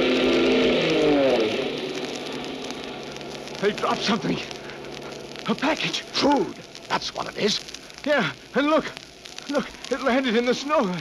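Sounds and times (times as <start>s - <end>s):
army plane approaching overhead: 0.0s - 5.4s
speech: 3.6s - 4.6s, 5.5s - 10.9s.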